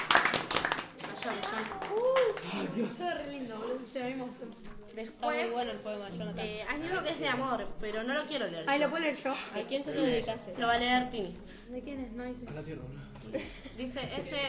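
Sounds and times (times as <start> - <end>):
audience applause: 0.0 - 2.9
speech: 1.3 - 14.4.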